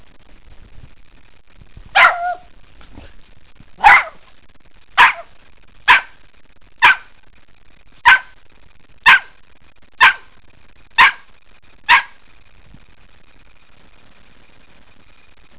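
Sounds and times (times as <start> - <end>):
terrier barking: 1.9 - 2.5, 3.8 - 4.3, 5.0 - 6.2, 6.8 - 7.2, 8.0 - 8.4, 9.0 - 9.4, 10.0 - 10.4, 11.0 - 11.3, 11.9 - 12.2.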